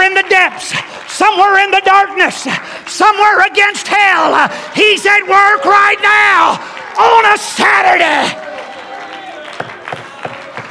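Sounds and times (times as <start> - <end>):
audience clapping in a steady rhythm: 0.0 - 10.6
speech: 0.3 - 8.4
crowd voices and shouting: 2.4 - 10.6.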